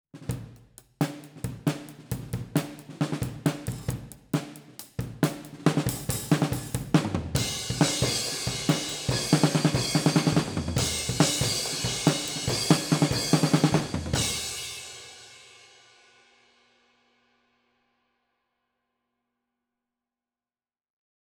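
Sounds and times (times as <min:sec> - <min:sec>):
snare drum through overhead microphones: 0:00.2 - 0:15.2.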